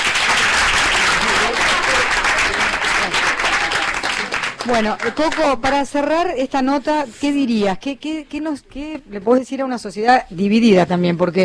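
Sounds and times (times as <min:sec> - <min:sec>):
audience applause: 0:00.0 - 0:05.7
speech: 0:04.7 - 0:11.4.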